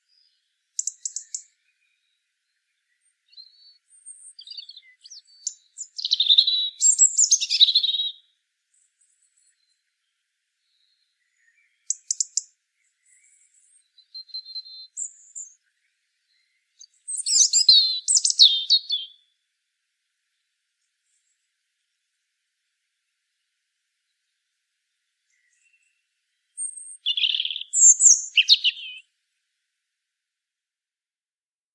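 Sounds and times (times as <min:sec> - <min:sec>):
European robin singing: 0:00.0 - 0:19.4, 0:25.2 - 0:29.2.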